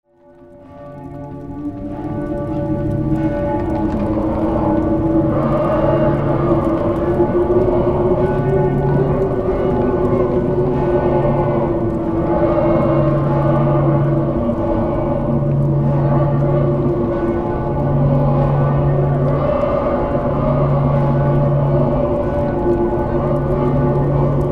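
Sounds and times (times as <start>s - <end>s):
witch mob: 0.2s - 24.5s.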